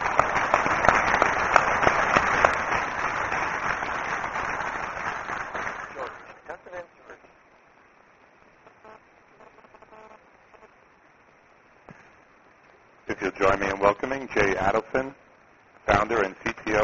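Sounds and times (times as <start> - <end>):
conference audience clapping for a panel of speakers: 0.0 - 6.5
speech: 13.6 - 15.2, 16.0 - 16.8.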